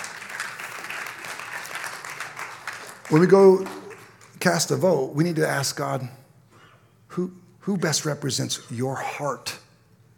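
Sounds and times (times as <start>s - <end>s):
audience clapping: 0.0s - 4.8s
speech: 3.1s - 3.8s, 4.4s - 6.2s, 7.2s - 9.6s.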